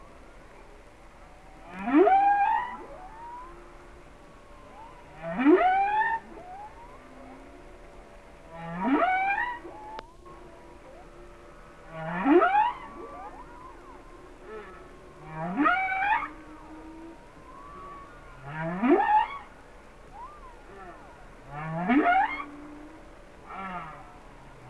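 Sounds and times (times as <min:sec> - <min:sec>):
humpback whales calling: 0:00.0 - 0:24.6.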